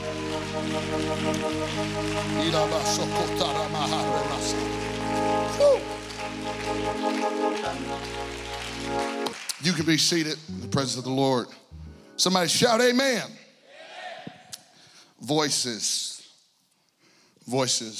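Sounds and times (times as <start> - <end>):
audience clapping hands: 0.0 - 10.8
speech: 0.7 - 11.6, 12.2 - 13.4, 15.2 - 16.1, 17.5 - 17.9.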